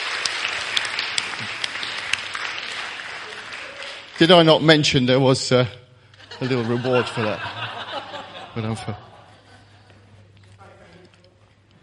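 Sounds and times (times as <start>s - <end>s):
audience applause: 0.0s - 4.7s
speech: 4.2s - 5.8s, 6.4s - 7.7s, 8.6s - 9.1s
laughter: 6.2s - 10.4s.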